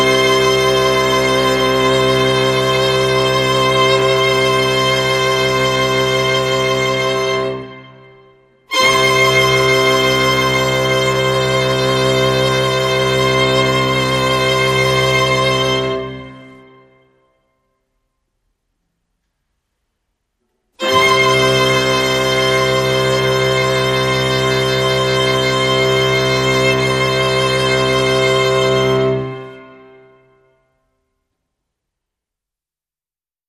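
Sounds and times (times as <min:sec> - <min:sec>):
strings playing: 0:00.0 - 0:17.0, 0:20.8 - 0:30.4.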